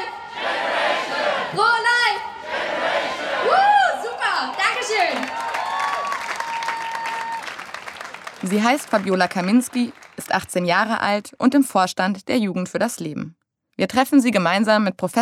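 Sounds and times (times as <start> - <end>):
crowd chanting slogan call-and-response style: 0.0 - 5.2
applause and cheering: 3.5 - 10.7
speech: 8.4 - 15.1.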